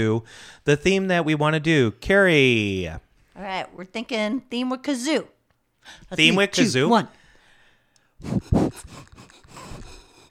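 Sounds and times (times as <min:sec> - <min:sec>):
speech: 0:00.0 - 0:07.2, 0:08.2 - 0:09.1
loud breath blowing into a studio microphone: 0:00.3 - 0:00.6, 0:07.2 - 0:10.2.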